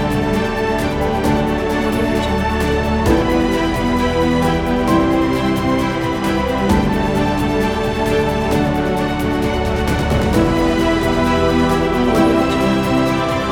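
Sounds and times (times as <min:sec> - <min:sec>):
epic motivational orchestral music: 0:00.0 - 0:13.5.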